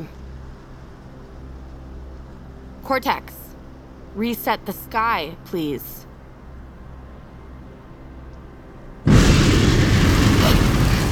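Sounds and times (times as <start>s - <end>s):
speech: 2.8s - 3.4s, 4.2s - 6.0s
thunder and lightning storm effect: 9.1s - 11.1s.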